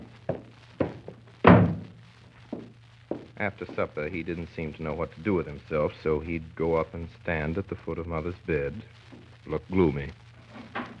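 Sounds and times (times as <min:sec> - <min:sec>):
door being shut: 0:01.4 - 0:02.0
speech: 0:03.4 - 0:10.2.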